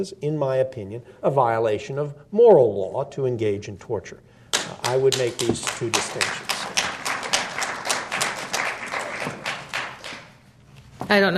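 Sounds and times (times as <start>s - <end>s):
speech: 0.0s - 6.7s, 11.1s - 11.3s
audience clapping: 4.5s - 10.5s.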